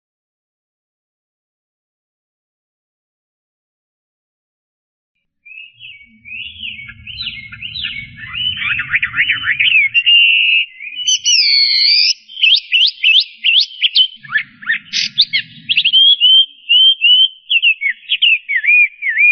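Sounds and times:
Chinese hwamei singing loud rapid whistled phrases: 5.5s - 19.3s.

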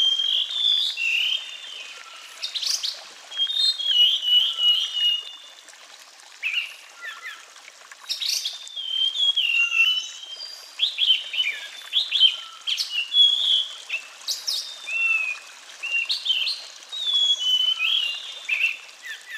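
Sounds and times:
Sulingan bird song whistles: 0.0s - 2.2s, 3.3s - 5.4s, 8.7s - 14.0s, 14.9s - 19.3s.

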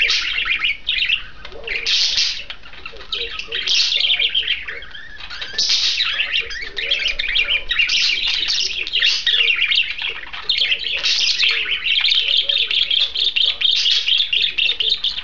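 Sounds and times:
pair of budgerigars warbling chatter: 0.0s - 15.2s.

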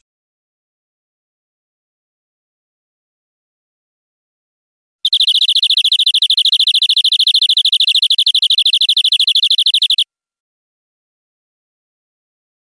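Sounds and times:
European greenfinch buzzy trill: 5.1s - 10.0s.

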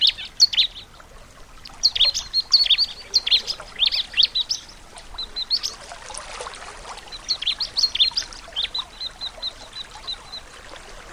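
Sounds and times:
bar-winged prinia singing: 1.6s - 6.0s, 7.1s - 10.5s.

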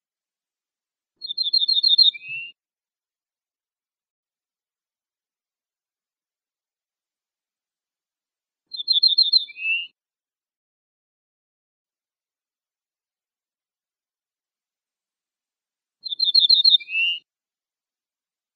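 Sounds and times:
ortolan bunting singing: 1.2s - 2.6s, 8.7s - 9.9s, 16.0s - 17.2s.

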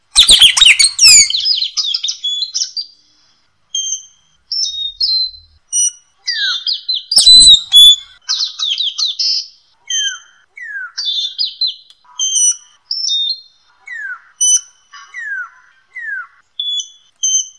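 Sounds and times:
Lory song of high whistled notes: 0.1s - 3.0s, 3.7s - 8.2s, 8.8s - 17.5s.

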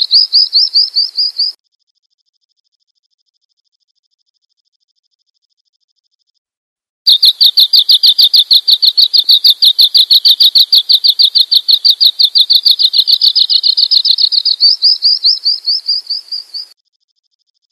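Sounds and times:
bird chirping: 0.0s - 1.6s, 7.1s - 16.8s.

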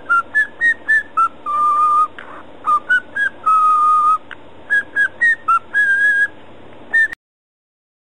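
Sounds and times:
cockatiel whistling a tune: 0.0s - 7.2s.

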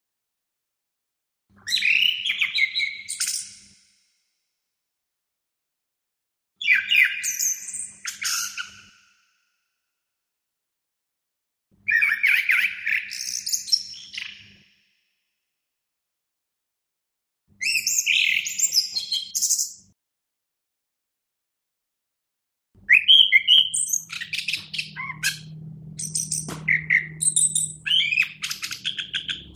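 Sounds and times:
Orange-headed Thrush song: 1.6s - 3.8s, 6.6s - 9.1s, 11.9s - 14.6s, 17.6s - 19.8s, 22.9s - 29.5s.

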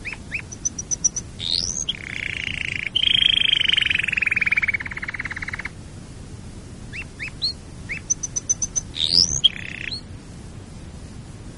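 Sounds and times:
canary singing: 0.0s - 5.8s, 6.9s - 10.1s.

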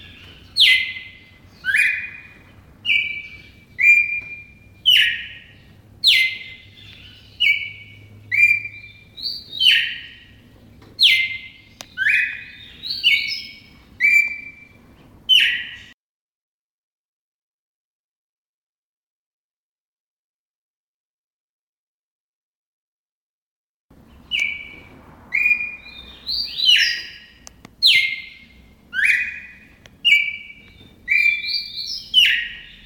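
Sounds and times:
red-crested cardinal chirping: 0.0s - 16.0s, 24.0s - 32.8s.

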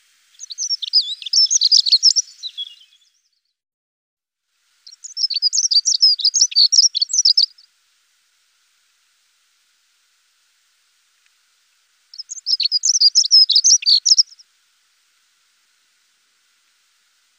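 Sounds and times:
dunnock song: 0.3s - 3.6s, 4.8s - 7.7s, 12.1s - 14.5s.

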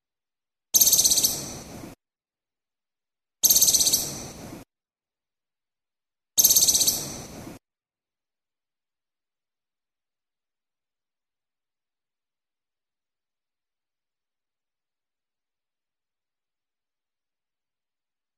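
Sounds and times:
Moluccan woodcock giving a harsh pulsed rattle call in Maluku: 0.8s - 1.5s, 3.4s - 4.2s, 6.4s - 7.2s.

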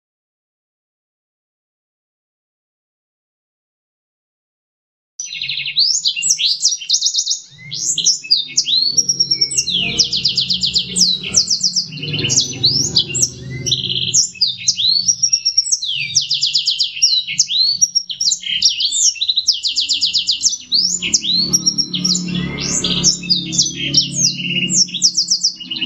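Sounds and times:
black-throated canary singing: 5.2s - 25.8s.

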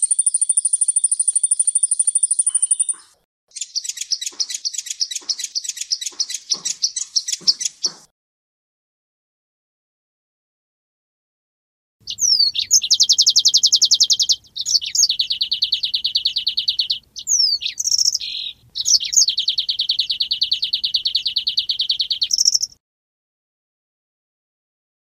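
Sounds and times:
manyar weaver bird singing: 0.0s - 8.1s, 12.0s - 22.8s.

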